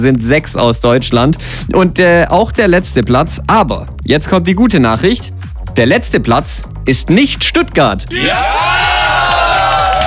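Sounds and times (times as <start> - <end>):
speech: 0.0 - 8.9
audience clapping and cheering: 8.1 - 10.0.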